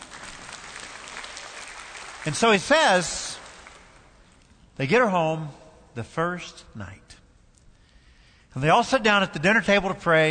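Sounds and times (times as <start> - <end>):
audience applause: 0.0 - 4.1
speech: 2.2 - 3.2, 4.8 - 7.1, 8.6 - 10.3.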